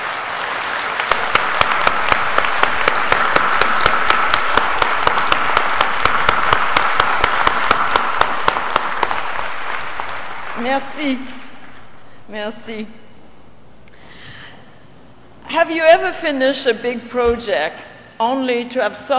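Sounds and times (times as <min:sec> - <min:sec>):
loud sustained applause from a large audience: 0:00.0 - 0:12.0
speech: 0:10.6 - 0:11.4, 0:12.3 - 0:13.0, 0:15.5 - 0:19.1.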